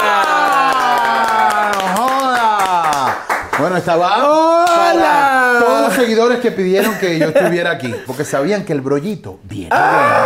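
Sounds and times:
audience applause: 0.0 - 3.8
speech: 3.7 - 10.2
laughter: 4.8 - 8.4.

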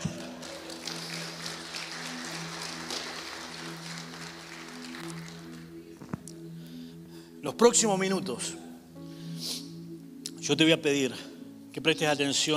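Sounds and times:
audience applause: 0.0 - 5.8
low sustained musical drone: 0.0 - 12.5
speech: 7.4 - 8.6, 10.5 - 12.5.

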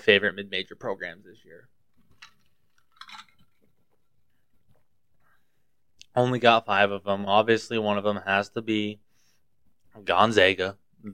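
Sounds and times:
speech: 0.0 - 1.8, 6.2 - 9.0, 10.0 - 11.1
glass clinking: 2.9 - 3.5.

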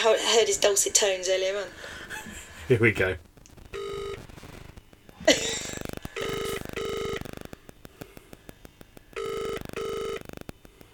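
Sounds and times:
speech: 0.0 - 3.3, 5.3 - 5.5
phone call ringing unanswered: 3.8 - 4.2, 6.1 - 7.2, 9.2 - 10.3.

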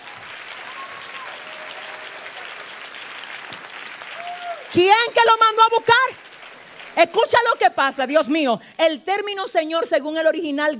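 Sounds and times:
crowd applauding: 0.0 - 8.0
faint whistles: 0.6 - 1.8
speech: 4.7 - 6.2, 7.0 - 10.7.

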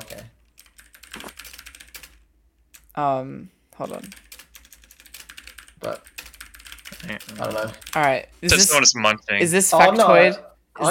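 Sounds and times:
typing on a computer keyboard: 0.0 - 2.9, 3.9 - 8.1
speech: 3.0 - 4.3, 5.8 - 6.1, 7.0 - 10.8.

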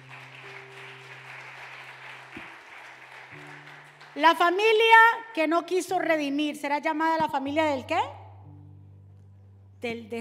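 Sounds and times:
crowd applauding loudly: 0.0 - 4.7
speech: 4.2 - 8.2, 9.8 - 10.1.

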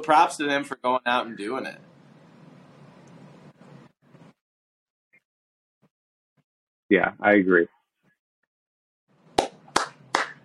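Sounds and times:
speech: 0.0 - 1.9, 6.9 - 7.8
applause: 9.4 - 10.4.

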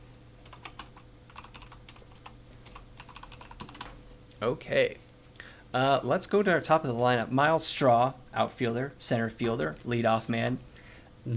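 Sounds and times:
typing on a computer keyboard: 0.4 - 4.0
speech: 4.4 - 5.0, 5.7 - 11.3.

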